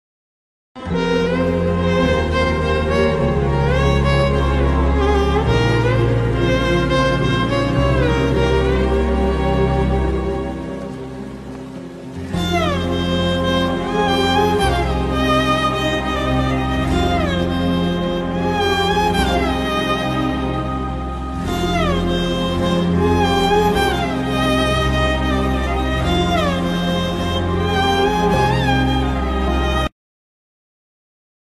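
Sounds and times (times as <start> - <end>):
sad movie background music ringtone: 0.8 - 29.9.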